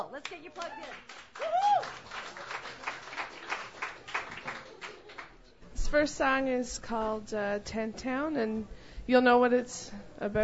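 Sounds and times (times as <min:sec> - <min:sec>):
speech: 0:00.0 - 0:02.8, 0:05.9 - 0:10.4
audience applause at a Sunday night open mic: 0:00.6 - 0:05.4.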